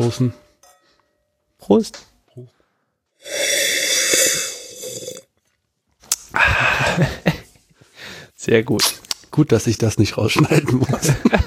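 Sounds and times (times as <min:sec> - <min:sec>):
speech: 0:00.1 - 0:00.4, 0:01.6 - 0:02.6, 0:06.3 - 0:07.3, 0:08.4 - 0:11.4
slurping wine: 0:03.2 - 0:05.3
laughter: 0:06.4 - 0:07.6, 0:10.3 - 0:11.4.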